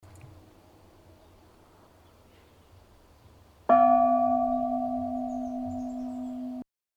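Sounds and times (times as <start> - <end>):
bell ringing: 3.7 - 6.6.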